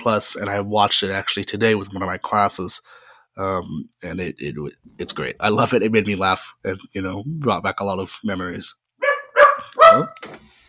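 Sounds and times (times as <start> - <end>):
speech: 0.0 - 8.8, 9.6 - 10.6
pet dog barking: 9.0 - 10.2.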